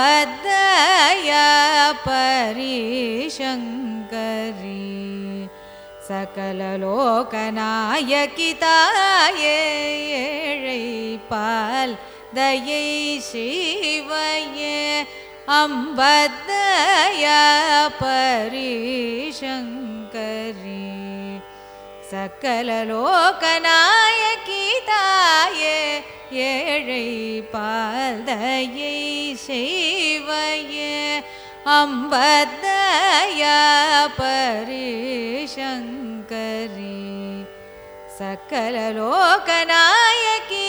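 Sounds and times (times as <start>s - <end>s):
carnatic raga performance: 0.0s - 40.6s.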